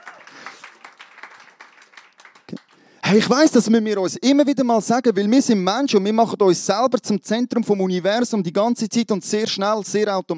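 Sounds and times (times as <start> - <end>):
church congregation applauding during worship: 0.0 - 3.5
speech: 3.1 - 10.3.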